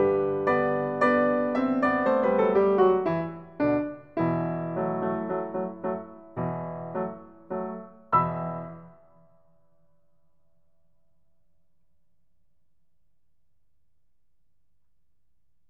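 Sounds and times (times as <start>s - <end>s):
Afghan melody on piano: 0.0s - 9.7s.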